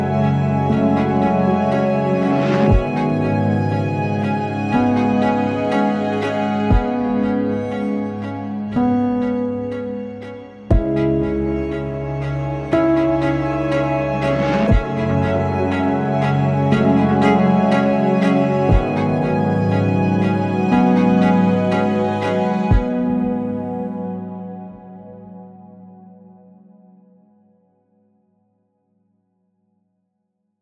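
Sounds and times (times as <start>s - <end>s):
viola playing: 0.0s - 24.2s.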